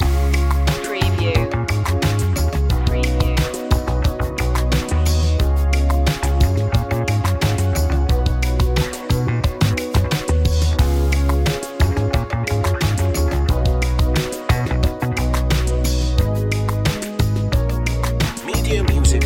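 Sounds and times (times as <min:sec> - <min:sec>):
night ride music loop: 0:00.0 - 0:19.2.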